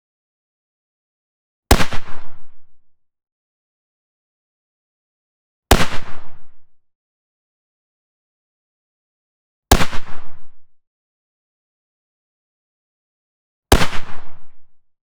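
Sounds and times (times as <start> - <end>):
Barrett M98B .338 Lapua rifle single shots: 1.7 - 2.3, 5.7 - 6.3, 13.7 - 14.3.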